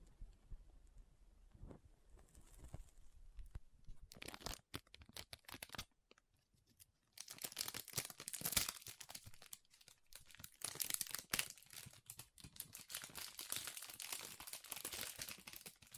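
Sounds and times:
soft squishy sticky crinkling: 2.2 - 15.9.

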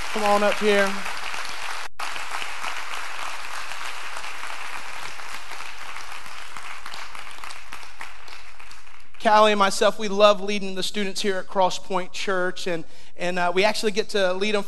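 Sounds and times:
round of applause: 0.0 - 9.2
speech: 0.2 - 1.1, 9.2 - 14.6.

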